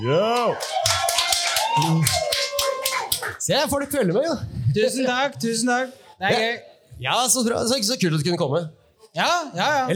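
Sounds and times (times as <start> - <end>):
speech: 0.0 - 1.0, 1.8 - 2.3, 3.3 - 9.9
audience applause: 0.2 - 3.4.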